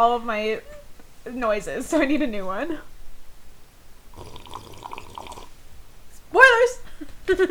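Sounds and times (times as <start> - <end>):
speech: 0.0 - 2.9, 6.3 - 7.4
person slurping tea: 4.1 - 5.6.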